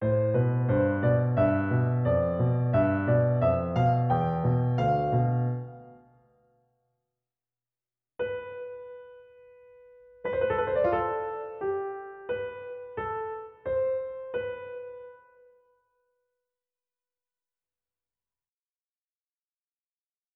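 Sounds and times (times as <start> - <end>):
piano fragment: 0.0 - 6.2, 8.2 - 15.6.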